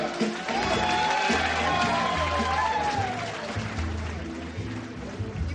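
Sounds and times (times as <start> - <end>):
cheering for newlyweds: 0.0 - 4.3
applause for newlyweds: 0.0 - 5.4.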